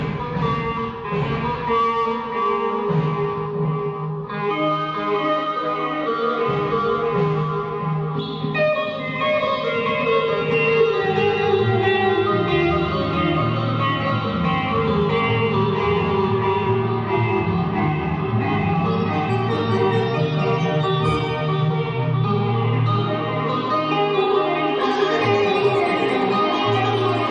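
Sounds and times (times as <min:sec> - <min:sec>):
guitar: 0:00.0 - 0:27.2
organ: 0:06.3 - 0:27.2.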